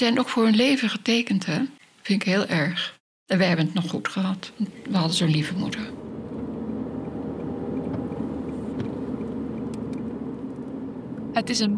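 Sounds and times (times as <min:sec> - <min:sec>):
speech: 0:00.0 - 0:06.0, 0:11.4 - 0:11.7
car engine and road rumble heard from inside the cabin: 0:04.7 - 0:11.7.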